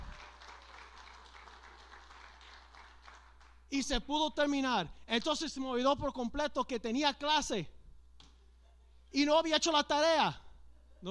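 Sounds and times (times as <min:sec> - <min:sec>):
audience applause: 0:00.0 - 0:03.6
speech: 0:03.7 - 0:07.8, 0:09.1 - 0:10.4.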